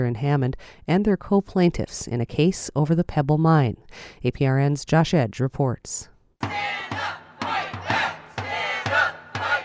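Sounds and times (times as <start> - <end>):
speech: 0.0 - 6.6
protest crowd chanting: 6.4 - 9.6.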